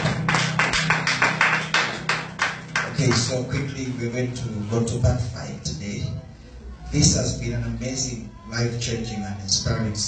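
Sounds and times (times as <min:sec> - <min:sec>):
audience clapping: 0:00.0 - 0:03.7
speech: 0:03.0 - 0:06.3, 0:06.9 - 0:10.0.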